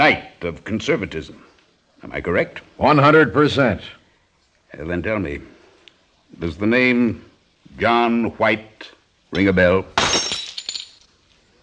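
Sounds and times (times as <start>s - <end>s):
speech: 0.0s - 4.0s, 4.7s - 5.5s, 6.3s - 10.3s
drink glass tipping over with clinks and rattle: 9.4s - 11.1s.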